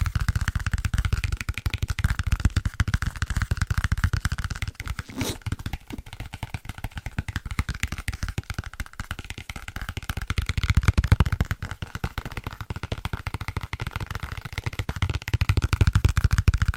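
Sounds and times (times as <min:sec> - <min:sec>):
fast tapping on book spines: 0:00.2 - 0:16.6.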